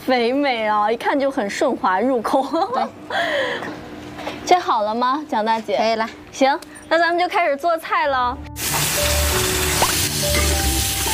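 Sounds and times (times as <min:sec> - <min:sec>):
speech: 0:00.1 - 0:03.8, 0:04.5 - 0:09.1
pork trotters stir-fried in a wok, sizzling and crackling: 0:08.6 - 0:11.1.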